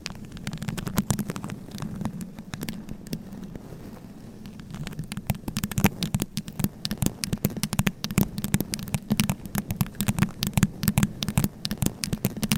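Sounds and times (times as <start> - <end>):
scratching, tapping and brushing on a microphone: 0.0 - 12.5.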